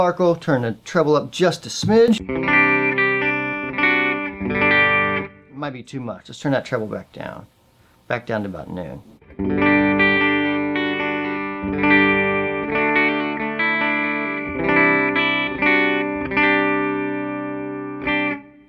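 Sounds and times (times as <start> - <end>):
speech: 0.0 - 2.8, 5.6 - 9.6
clean electric guitar strumming chords through an amp: 1.8 - 5.6, 9.2 - 18.6.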